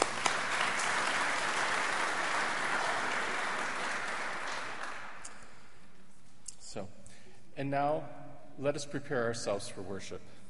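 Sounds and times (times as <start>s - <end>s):
church congregation applause welcoming a visiting missionary: 0.0s - 5.6s
speech: 6.8s - 7.0s, 7.6s - 10.4s.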